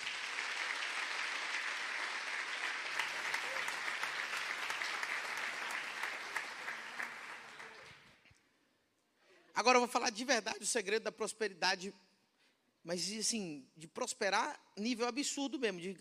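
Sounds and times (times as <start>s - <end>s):
audience applause: 0.0s - 8.2s
speech: 9.6s - 12.1s, 12.8s - 15.9s.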